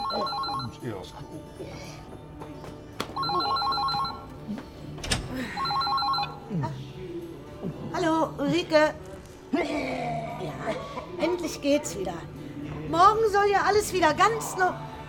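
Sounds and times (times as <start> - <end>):
telephone ringing during an outgoing call: 0.0 - 0.8, 3.2 - 4.3, 5.5 - 6.4
speech: 0.8 - 2.8, 8.4 - 14.9.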